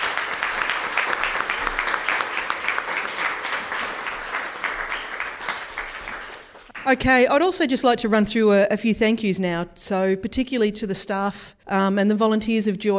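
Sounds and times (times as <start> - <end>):
audience applauding: 0.0 - 7.2
speech: 6.9 - 12.9.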